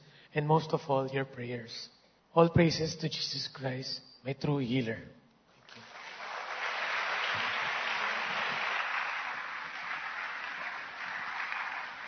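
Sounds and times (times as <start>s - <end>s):
speech: 0.4s - 5.2s
audience applause: 5.7s - 12.0s.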